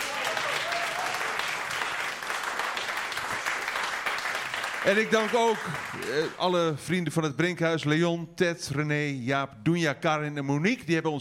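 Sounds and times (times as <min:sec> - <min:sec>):
audience applause for a jazz band: 0:00.0 - 0:06.4
speech: 0:04.8 - 0:11.1.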